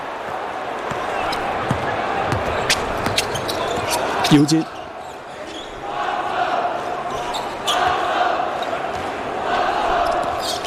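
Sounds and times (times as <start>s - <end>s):
noise: 0.0s - 10.6s
basketball being dribbled during a game: 0.8s - 3.9s
speech: 4.3s - 4.8s.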